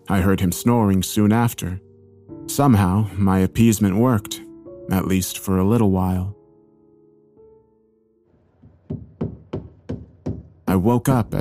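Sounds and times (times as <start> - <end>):
speech: 0.1 - 1.9, 2.5 - 6.4, 10.8 - 11.3
hammering nails in the backyard: 8.5 - 10.7.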